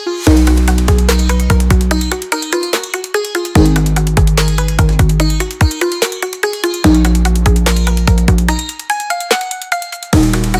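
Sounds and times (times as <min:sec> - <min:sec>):
hi-hats: 0:00.3 - 0:10.5.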